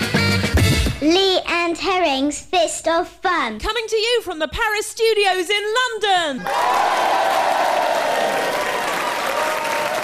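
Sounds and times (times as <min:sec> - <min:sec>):
speech: 0:01.0 - 0:08.1
studio audience applauding at the Paris Studio in London: 0:06.4 - 0:10.0.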